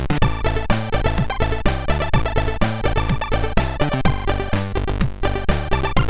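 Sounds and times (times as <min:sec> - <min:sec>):
music loop: 0:00.2 - 0:06.0.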